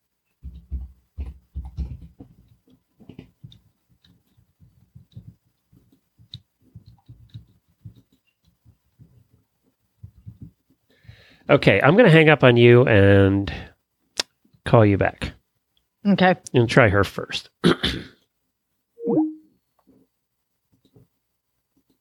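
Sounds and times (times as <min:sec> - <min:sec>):
typing on a keyboard: 0:01.6 - 0:09.2
speech: 0:11.5 - 0:13.7, 0:14.7 - 0:15.3, 0:16.0 - 0:17.5.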